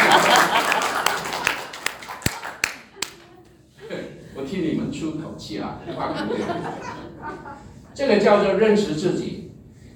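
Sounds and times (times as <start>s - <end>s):
laughter: 0.0s - 1.7s, 5.8s - 7.8s
applause from a sermon audience: 0.0s - 3.3s
speech: 8.0s - 9.4s.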